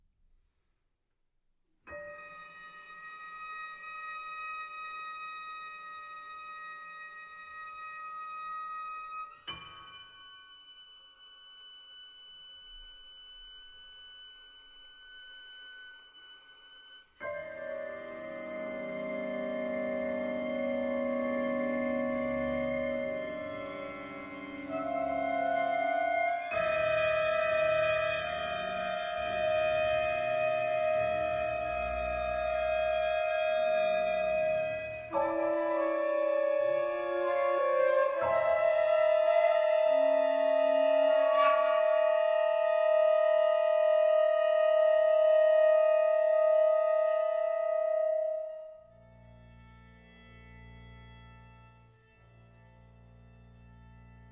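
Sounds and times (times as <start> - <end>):
violin concerto: 16.2 - 52.7.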